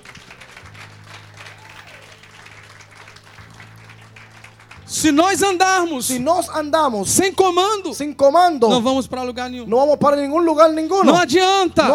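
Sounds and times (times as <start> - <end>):
audience applause: 0.0 - 5.9
speech: 4.9 - 11.9.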